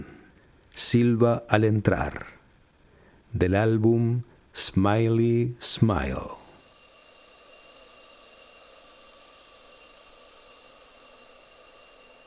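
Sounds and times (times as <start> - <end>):
speech: 0.8 - 2.4, 3.3 - 6.4
sand trickling through an hourglass: 5.6 - 12.2.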